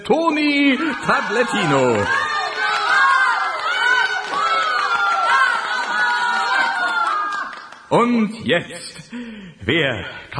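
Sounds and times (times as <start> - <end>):
speech: 0.1 - 2.2, 7.9 - 10.3
audience applause and cheering: 0.6 - 7.9.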